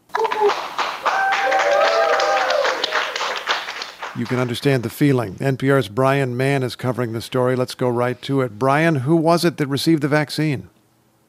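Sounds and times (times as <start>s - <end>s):
applause: 0.0s - 4.8s
speech: 4.2s - 10.7s.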